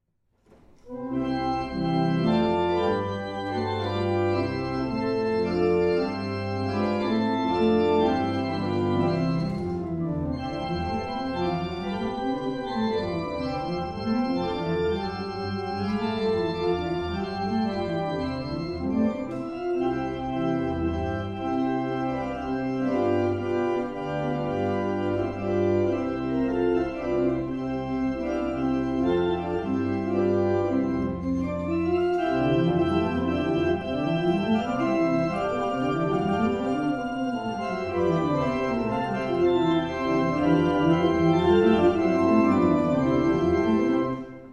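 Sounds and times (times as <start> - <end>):
barrel organ playing a national anthem: 0.9 - 44.5.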